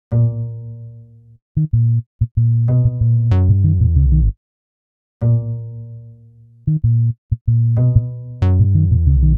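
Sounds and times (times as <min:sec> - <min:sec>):
bass combo playing: 0:01.6 - 0:04.4, 0:06.7 - 0:09.3.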